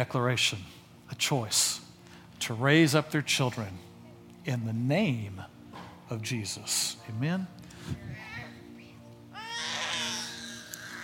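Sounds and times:
speech: 0.0s - 1.8s, 2.4s - 8.2s
baby crying: 9.3s - 11.0s.

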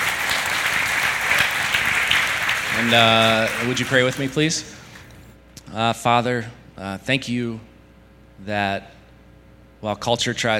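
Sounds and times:
audience applause: 0.0s - 5.1s
speech: 2.8s - 4.8s, 5.7s - 7.7s, 8.4s - 9.0s, 9.8s - 10.5s.

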